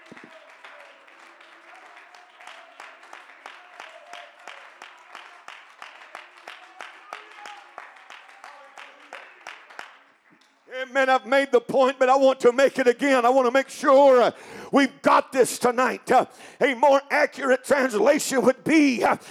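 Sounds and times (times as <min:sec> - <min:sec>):
audience clapping hands: 0:00.0 - 0:19.2
speech: 0:10.8 - 0:19.2.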